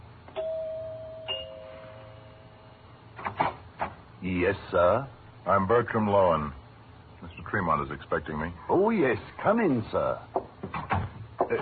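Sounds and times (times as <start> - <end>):
low steady hum: 0.0 - 11.6
two-note doorbell chime: 0.3 - 2.8
speech: 4.2 - 6.6, 7.2 - 10.4.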